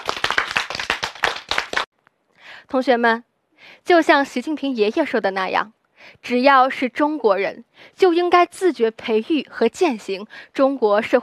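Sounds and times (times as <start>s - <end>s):
group of students clapping for engineers: 0.0s - 1.9s
speech: 2.7s - 11.2s.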